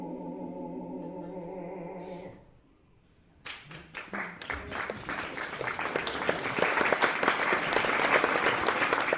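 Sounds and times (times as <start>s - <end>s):
audience applause: 3.5s - 9.1s.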